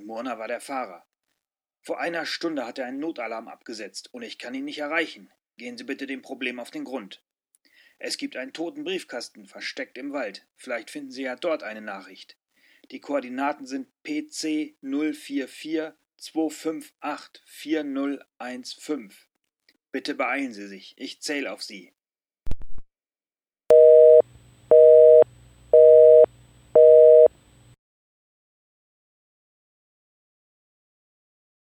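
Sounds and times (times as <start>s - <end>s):
phone call: 23.7s - 27.3s.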